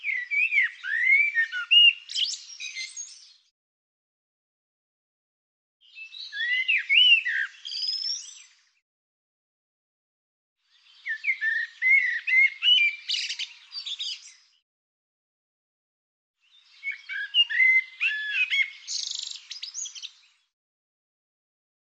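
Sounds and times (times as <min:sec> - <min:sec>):
bird song: 0:00.0 - 0:03.5, 0:05.8 - 0:08.8, 0:10.6 - 0:14.6, 0:16.4 - 0:20.6.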